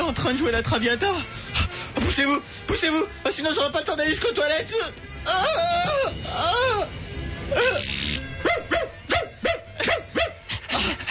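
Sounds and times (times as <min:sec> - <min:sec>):
speech: 0:00.2 - 0:08.9
dog whining and yapping: 0:08.3 - 0:11.0.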